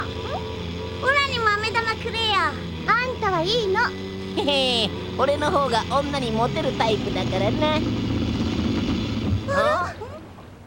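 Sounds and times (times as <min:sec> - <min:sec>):
car engine stalling out of fuel: 0:01.0 - 0:09.6
speech: 0:02.0 - 0:08.0.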